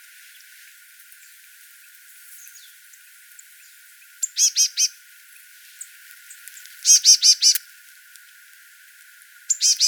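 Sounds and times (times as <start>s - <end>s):
marsh tit calling, Poecile palustris: 6.8s - 7.6s, 9.5s - 9.8s.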